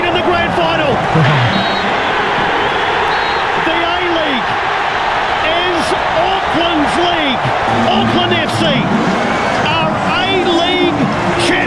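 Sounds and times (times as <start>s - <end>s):
large stadium crowd roaring: 0.0s - 11.6s
whistles from the crowd: 1.3s - 3.5s.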